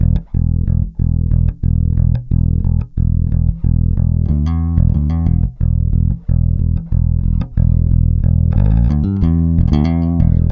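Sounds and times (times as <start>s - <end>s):
rock bass guitar: 0.0s - 10.4s.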